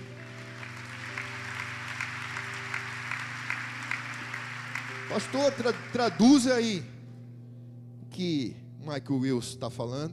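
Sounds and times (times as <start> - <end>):
audience applause: 0.0 - 6.7
low organ tones: 0.0 - 10.1
speech: 5.1 - 6.9, 8.2 - 10.1.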